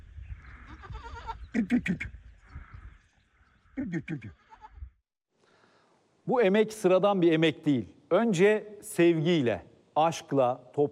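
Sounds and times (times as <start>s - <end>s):
lambs and goat kids bleating while being bottle-fed milk beside a farmhouse: 0.5s - 1.5s
speech: 1.5s - 2.2s, 3.9s - 4.4s, 6.3s - 10.9s.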